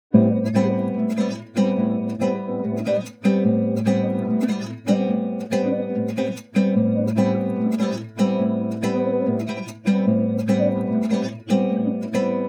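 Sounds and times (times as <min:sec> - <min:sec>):
guitar: 0:00.0 - 0:12.4.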